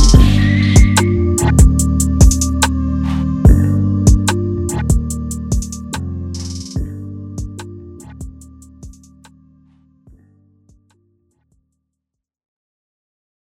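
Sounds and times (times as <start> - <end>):
instrumental music: 0.0 - 9.4.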